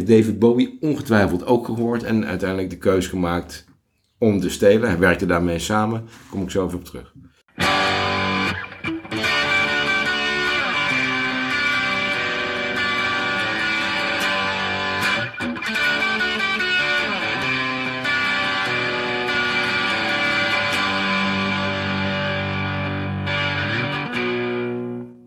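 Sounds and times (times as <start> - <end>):
speech: 0.0 - 7.8
loud distorted electric guitar riff played on a Gibson: 7.5 - 25.2.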